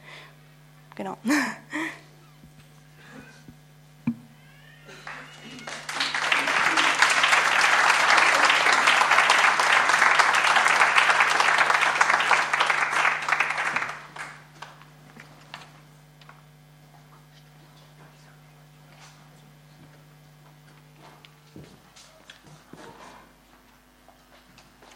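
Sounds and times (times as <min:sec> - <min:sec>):
speech: 0:01.0 - 0:01.7
audience applause: 0:04.8 - 0:14.9
laughter: 0:04.9 - 0:13.9.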